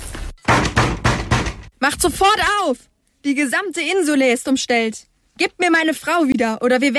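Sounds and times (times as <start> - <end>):
hammering on a wooden door: 0.4 - 1.7
speech: 1.9 - 6.9.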